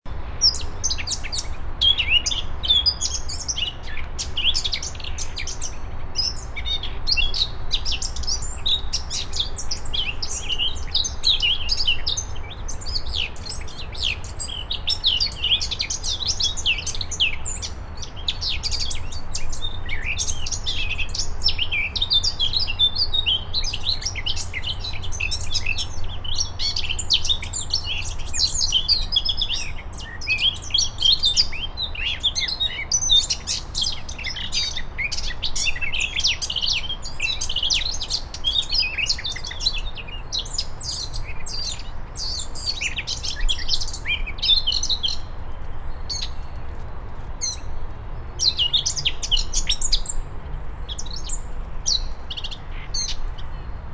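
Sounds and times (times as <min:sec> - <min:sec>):
Sylvia atricapilla singing: 0:00.1 - 0:46.5, 0:47.4 - 0:47.7, 0:48.4 - 0:50.2, 0:50.9 - 0:53.7.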